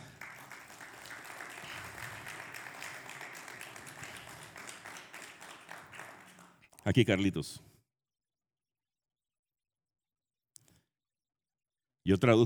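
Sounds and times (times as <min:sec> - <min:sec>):
audience applause: 0:00.0 - 0:06.6
speech: 0:06.8 - 0:07.7, 0:12.1 - 0:12.4.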